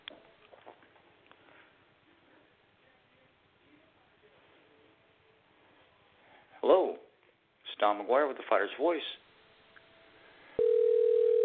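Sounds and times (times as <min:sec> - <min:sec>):
quiet hiss on a phone line: 0:00.0 - 0:11.4
speech: 0:06.6 - 0:07.0, 0:07.8 - 0:09.2
phone line ringing tone: 0:10.6 - 0:11.4.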